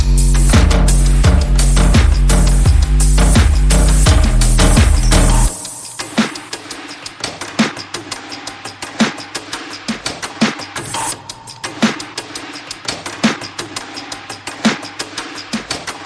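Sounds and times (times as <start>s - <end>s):
bass: 0.0s - 5.6s
percussion: 0.0s - 16.0s.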